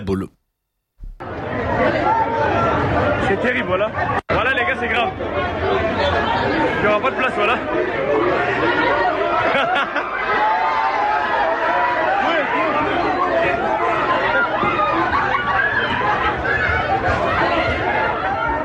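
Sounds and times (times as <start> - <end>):
speech: 0.1 - 0.4, 3.3 - 4.2, 4.8 - 10.6
large crowd chattering while boarding a train: 1.0 - 18.6
bursts of laughter: 9.3 - 10.4.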